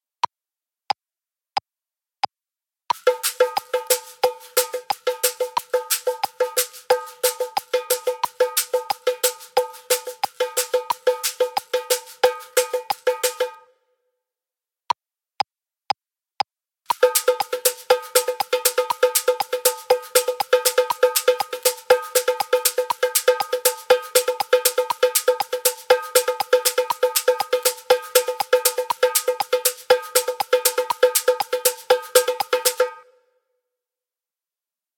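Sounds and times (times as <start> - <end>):
caxixi basket shaker rattling: 3.0 - 13.6, 16.9 - 33.0.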